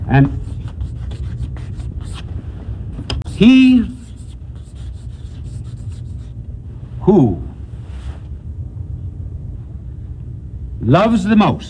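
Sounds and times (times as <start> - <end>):
steady low hum: 0.0 - 11.6
speech: 0.1 - 0.5, 3.4 - 4.0, 7.1 - 7.4, 10.9 - 11.6
pen writing out text by hand: 0.4 - 2.3, 4.0 - 6.2.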